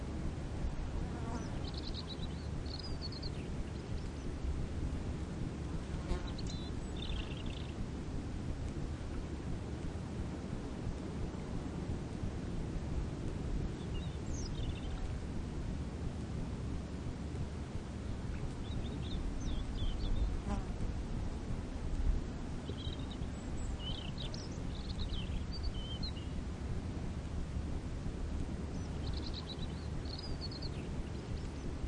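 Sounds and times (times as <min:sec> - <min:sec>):
faint ocean: 0:00.0 - 0:31.8
small birds tweeting by the sea: 0:01.2 - 0:04.4, 0:06.1 - 0:07.8, 0:13.8 - 0:15.2, 0:18.1 - 0:20.6, 0:22.6 - 0:26.4, 0:28.7 - 0:31.8.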